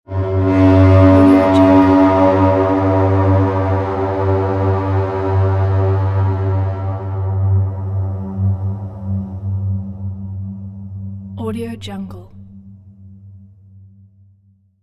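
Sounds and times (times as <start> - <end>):
horn: 0.1 - 7.6.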